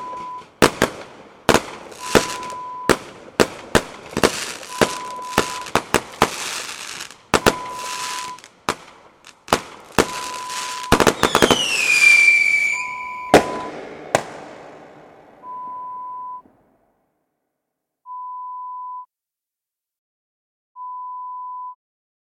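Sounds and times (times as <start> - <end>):
big fireworks: 0.0 - 15.8.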